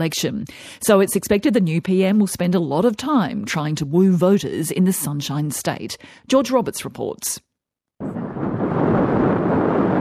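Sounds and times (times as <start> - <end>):
speech: 0.0 - 8.2
wind blowing dust across dry paddocks in Charleville, southwest Queensland: 8.0 - 10.0.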